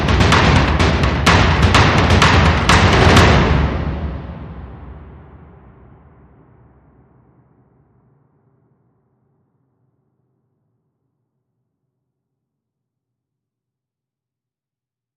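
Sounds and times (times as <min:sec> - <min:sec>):
mid drums: 0:00.0 - 0:07.1.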